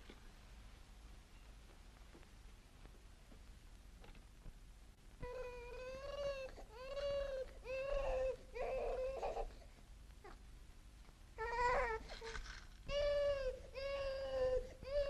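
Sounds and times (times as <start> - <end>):
baby crying: 5.2 - 9.6, 12.9 - 15.0.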